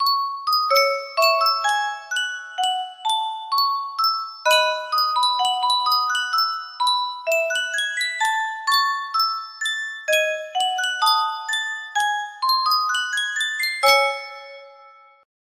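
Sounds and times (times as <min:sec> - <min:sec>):
Yunsheng custom tune music box: 0:00.0 - 0:15.3.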